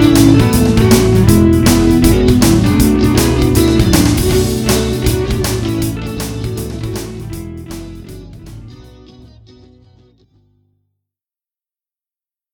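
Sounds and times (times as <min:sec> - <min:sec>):
musical riff: 0:00.0 - 0:10.0.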